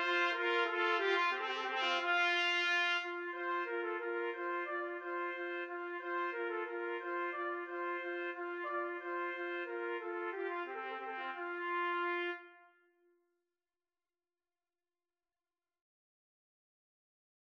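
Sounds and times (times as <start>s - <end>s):
trumpet playing classical piece: 0.0s - 12.8s.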